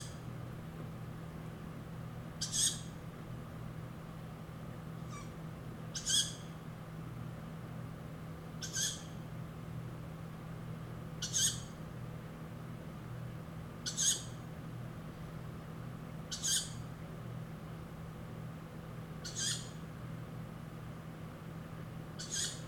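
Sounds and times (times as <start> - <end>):
low droning hum: 0.0 - 22.6
tawny owl rasping calls: 2.4 - 3.0, 5.0 - 6.5, 8.6 - 9.2, 11.2 - 11.8, 13.8 - 14.4, 16.3 - 16.8, 19.2 - 19.8, 22.2 - 22.6.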